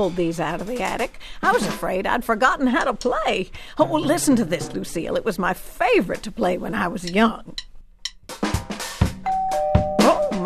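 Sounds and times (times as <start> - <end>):
speech: 0.0 - 7.7
doorbell ringing: 9.2 - 10.4.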